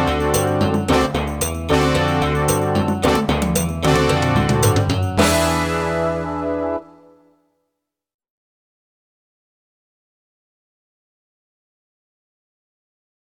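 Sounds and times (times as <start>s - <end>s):
snare drum in combinations: 0.0s - 6.2s.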